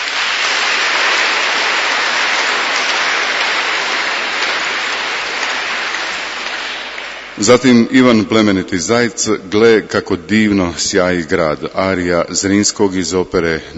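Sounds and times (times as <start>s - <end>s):
audience applause at a classical concert: 0.0s - 7.8s
speech: 7.4s - 13.7s.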